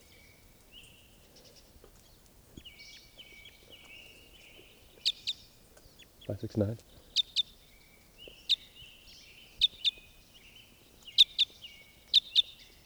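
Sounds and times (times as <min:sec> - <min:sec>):
bird chirping in flight: 0:00.0 - 0:12.8.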